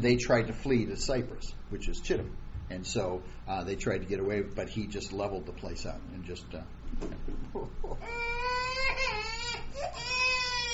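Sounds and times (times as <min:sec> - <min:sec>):
speech: 0:00.0 - 0:09.0
young child crying after bumping head: 0:08.0 - 0:10.7.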